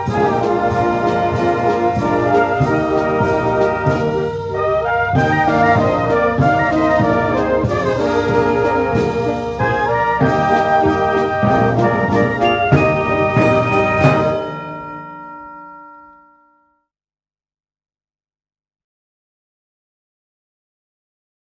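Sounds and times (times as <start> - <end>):
fanfare march: 0.0 - 16.6.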